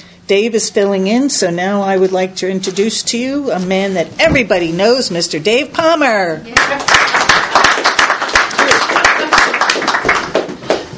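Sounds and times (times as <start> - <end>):
speech: 0.3 - 6.9
audience applause: 6.6 - 10.8.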